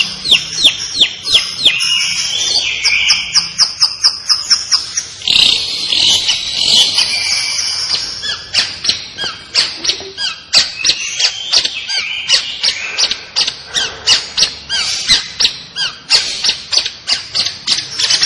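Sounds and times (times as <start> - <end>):
long-tailed shrike singing: 0.0 - 18.2.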